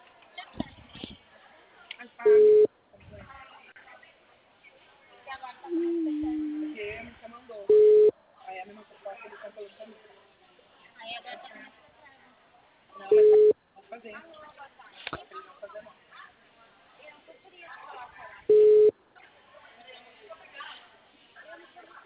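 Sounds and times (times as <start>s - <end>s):
noise: 0.0s - 22.0s
telephone line tone on a call not connecting: 2.3s - 2.7s, 7.7s - 8.1s, 13.1s - 13.5s, 18.5s - 18.9s
person talking: 5.7s - 6.9s.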